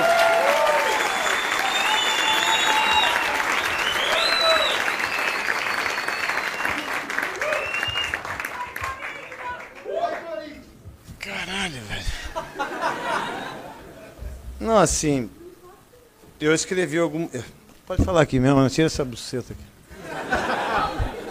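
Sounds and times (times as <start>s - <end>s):
whistles and cheers: 0.0s - 8.4s
audience applause: 0.0s - 10.6s
laughter: 12.1s - 14.4s, 19.9s - 21.2s
speech: 14.8s - 15.4s, 16.4s - 19.7s.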